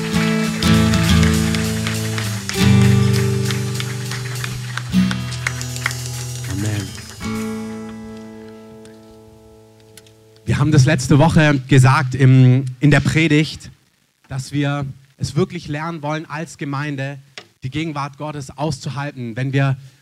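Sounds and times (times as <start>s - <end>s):
audience applause: 0.0s - 8.5s
speech: 10.6s - 19.9s.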